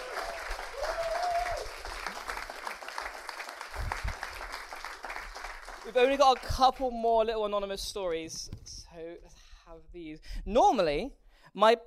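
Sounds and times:
crowd clapping: 0.0 - 7.0
speech: 5.9 - 11.8.

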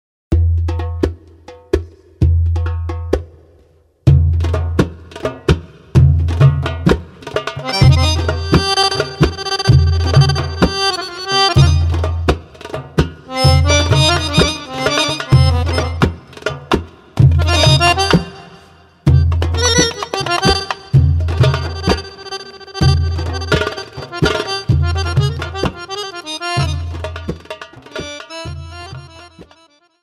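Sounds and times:
darbuka drumming: 0.3 - 29.8
accordion: 7.6 - 12.5, 13.2 - 30.0.

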